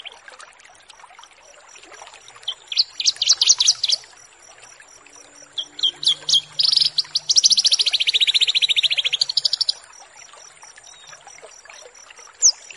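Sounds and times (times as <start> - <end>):
Horsfield's bush lark singing buzzy chirps: 2.4 - 9.8.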